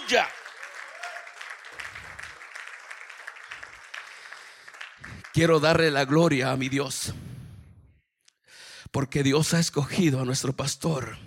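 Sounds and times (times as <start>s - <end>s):
large audience applauding loudly: 0.0s - 7.0s
speech: 0.1s - 0.4s, 5.4s - 7.3s, 8.9s - 11.2s.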